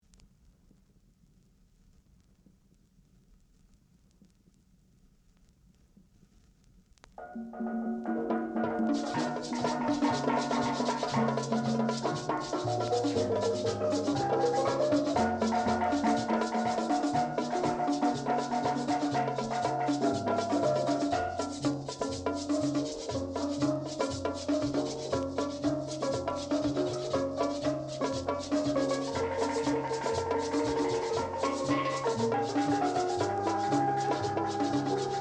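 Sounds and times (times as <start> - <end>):
steel pan: 7.2 - 35.1.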